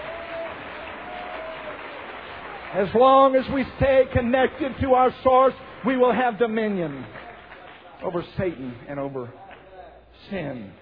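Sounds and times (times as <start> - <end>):
congregation clapping hands during a morning church service: 0.0 - 9.9
speech: 2.7 - 7.2, 8.0 - 9.4, 10.2 - 10.8.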